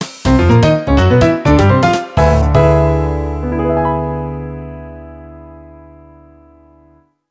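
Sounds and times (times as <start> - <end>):
jingle: 0.3 - 4.9.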